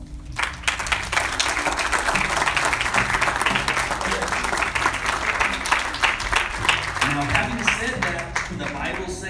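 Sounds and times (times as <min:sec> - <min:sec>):
audience round of applause: 0:00.0 - 0:09.2.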